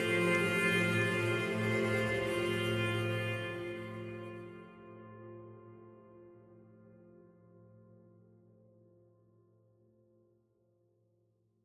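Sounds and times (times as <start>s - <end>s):
solo string instrument: 0.0s - 7.2s.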